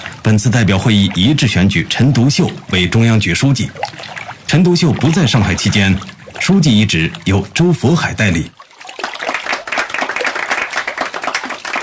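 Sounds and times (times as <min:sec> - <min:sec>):
speech: 0:00.2 - 0:08.6
soft applause from a group: 0:08.8 - 0:11.8.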